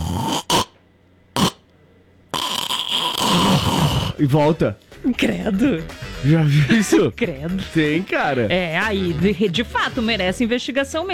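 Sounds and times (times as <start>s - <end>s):
voice imitating choked snoring with gasping for air: 0.0s - 0.8s, 1.4s - 1.7s, 2.3s - 4.2s
speech: 4.2s - 11.1s.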